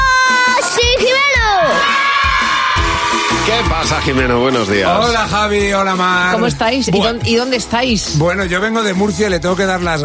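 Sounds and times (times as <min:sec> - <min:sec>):
children shouting and cheering: 0:00.0 - 0:04.7
speech: 0:03.8 - 0:10.0.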